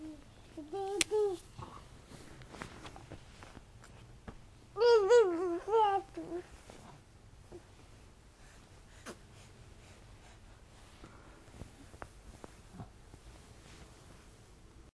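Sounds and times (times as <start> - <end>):
baby noises: 4.8 - 6.4.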